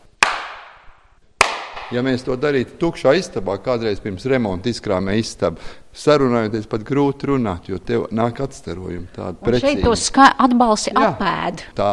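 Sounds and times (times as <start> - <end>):
hand clap in a room: 0.0 - 2.0
speech: 1.9 - 11.9.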